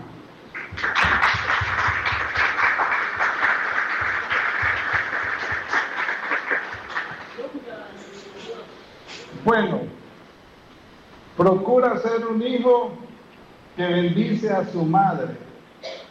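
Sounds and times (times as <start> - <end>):
audience applause: 0.5 - 7.6
speech: 9.5 - 10.0, 11.4 - 13.0, 13.8 - 15.4.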